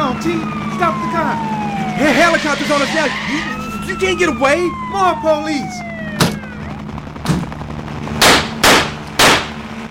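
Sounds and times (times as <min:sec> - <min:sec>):
speech: 0:00.2 - 0:05.9
gunshots: 0:06.2 - 0:09.7.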